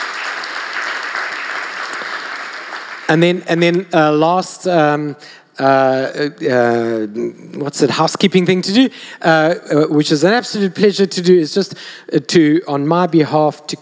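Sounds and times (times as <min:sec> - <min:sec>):
congregation clapping during a Sunday morning church service in Mandela Bay: 0:00.0 - 0:04.0
speech: 0:03.1 - 0:13.8.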